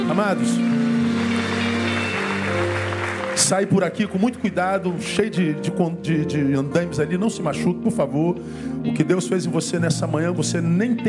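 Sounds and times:
audience applause: 0.0s - 4.8s
speech: 0.1s - 0.9s, 2.5s - 11.0s.

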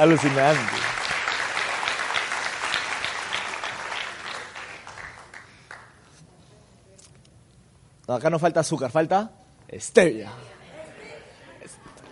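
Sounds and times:
speech: 0.0s - 0.8s, 8.1s - 10.6s
audience applause: 0.0s - 5.9s.

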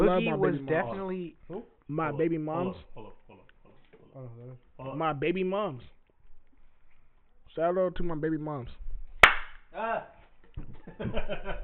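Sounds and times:
speech: 0.1s - 3.2s, 4.2s - 6.0s, 7.6s - 8.8s, 9.7s - 11.6s
loud hand clap near microphones: 9.2s - 9.6s
laughter: 10.7s - 11.6s.

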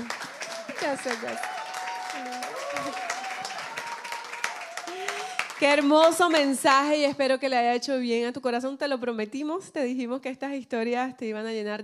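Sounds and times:
applause: 0.0s - 6.9s
speech: 0.8s - 1.5s, 2.2s - 3.1s, 5.6s - 11.8s.

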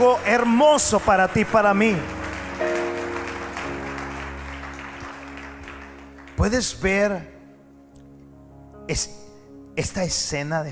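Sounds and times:
church audience applause: 0.0s - 6.8s
organ or keyboard chords: 0.0s - 10.5s
speech: 0.2s - 2.7s, 6.4s - 7.3s, 8.9s - 9.2s, 9.8s - 10.7s.

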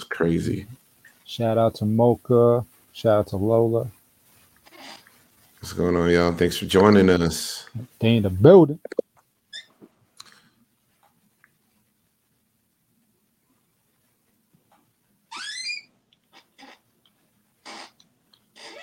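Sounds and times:
speech: 0.2s - 4.0s, 5.6s - 9.0s
office chair creaking and squeaking: 4.5s - 5.6s, 17.6s - 18.8s.

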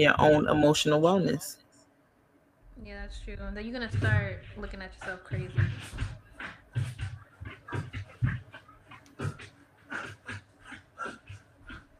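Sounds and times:
speech: 0.0s - 1.6s, 2.8s - 6.9s
dog panting heavily: 4.2s - 11.9s.

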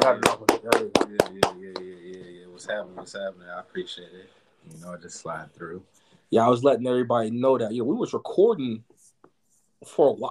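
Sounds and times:
man clapping his hands: 0.0s - 2.0s
speech: 0.0s - 8.9s, 9.8s - 10.2s.

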